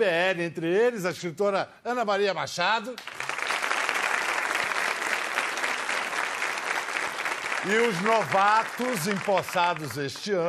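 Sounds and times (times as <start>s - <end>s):
speech: 0.0s - 3.2s, 7.6s - 10.4s
audience clapping: 3.0s - 10.4s.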